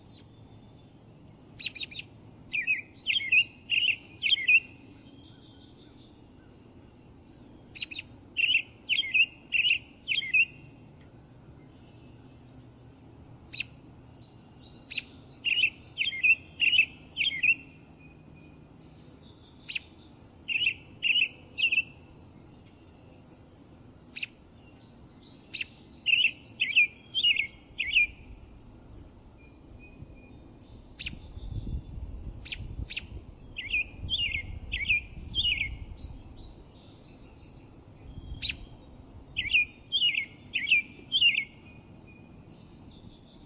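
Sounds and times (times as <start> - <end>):
American robin singing whistled phrases: 1.6 - 6.0, 7.7 - 10.6, 14.7 - 22.0, 25.4 - 28.2, 29.3 - 43.4.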